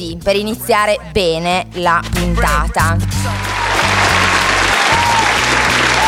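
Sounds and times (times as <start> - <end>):
speech: 0.0 - 3.4
applause: 3.2 - 6.0.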